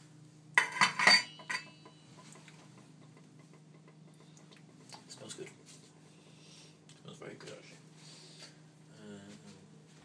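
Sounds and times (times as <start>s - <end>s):
metal lid lifted off a cooking pot: 0.6s - 1.7s.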